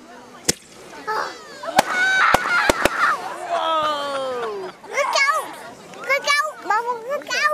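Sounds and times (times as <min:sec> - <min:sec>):
laughter: 0:01.3 - 0:06.3
fireworks banging: 0:01.6 - 0:03.6.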